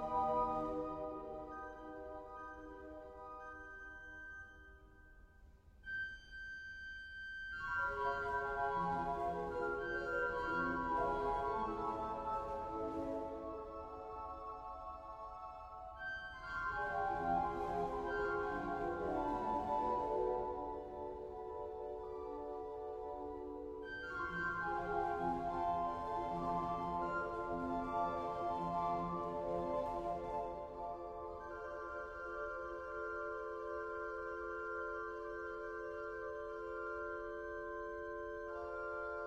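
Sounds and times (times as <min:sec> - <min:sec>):
Cavaille-Coll flutes: 0:00.0 - 0:39.2.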